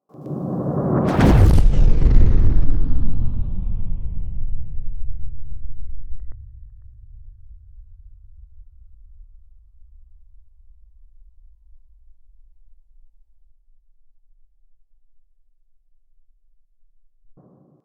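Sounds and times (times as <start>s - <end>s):
whoosh: 0.1s - 9.2s.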